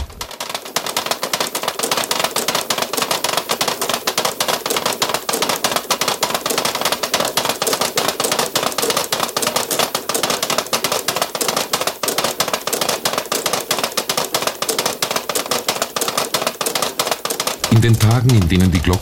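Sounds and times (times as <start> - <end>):
wooden Easter ratchets clattering in church in Rietz: 0.0 - 18.9
speech: 17.9 - 18.9.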